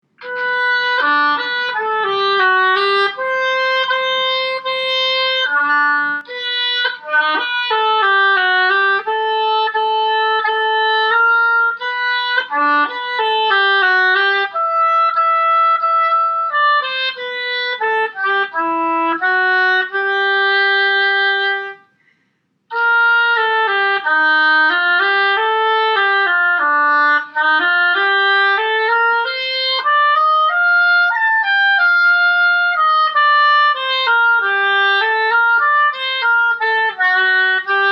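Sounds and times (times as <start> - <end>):
oboe: 0.2 - 37.8.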